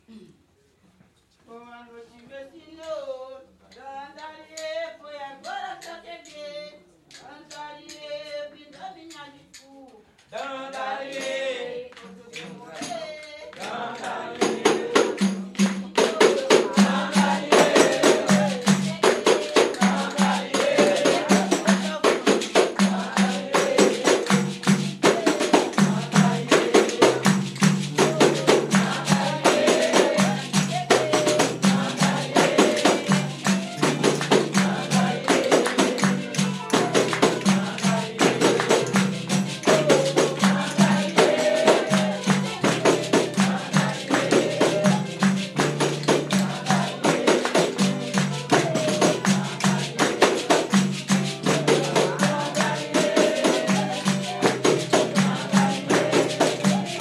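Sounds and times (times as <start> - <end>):
baiao music: 10.4 - 56.9.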